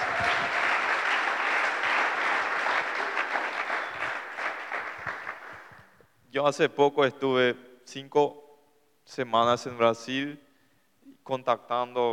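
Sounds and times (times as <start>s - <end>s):
audience applause: 0.0s - 5.8s
speech: 6.4s - 8.4s, 9.1s - 10.4s, 11.2s - 12.1s.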